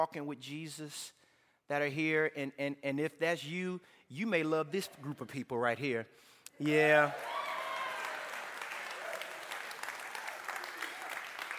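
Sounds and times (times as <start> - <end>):
speech: 0.0 - 7.4
audience clapping: 6.6 - 11.5.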